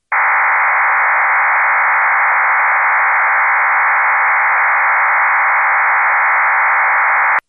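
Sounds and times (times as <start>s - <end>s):
FreeDV 700E digital voice radio signal: 0.0s - 7.4s.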